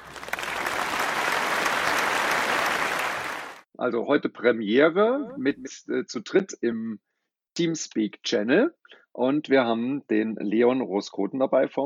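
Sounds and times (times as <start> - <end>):
applause: 0.0 - 3.7
speech: 3.8 - 11.8.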